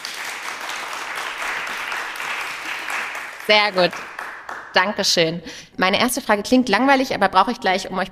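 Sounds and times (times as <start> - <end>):
whole room clapping loudly: 0.0 - 5.0
speech: 3.5 - 4.1, 4.8 - 8.0.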